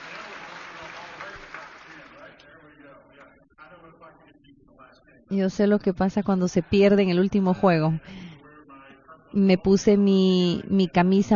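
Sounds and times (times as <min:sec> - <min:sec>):
audience applause: 0:00.0 - 0:02.3
speech: 0:05.3 - 0:08.3, 0:09.3 - 0:11.3.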